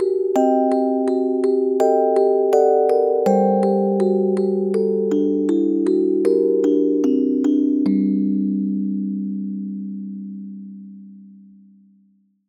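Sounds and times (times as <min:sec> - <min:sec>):
dark music box melody: 0:00.0 - 0:09.5.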